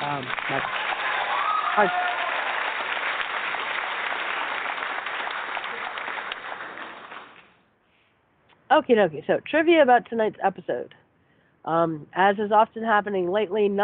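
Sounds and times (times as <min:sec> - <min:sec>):
audience applause: 0:00.0 - 0:07.5
speech: 0:00.2 - 0:00.9, 0:01.8 - 0:02.1, 0:08.8 - 0:11.0, 0:11.6 - 0:13.8.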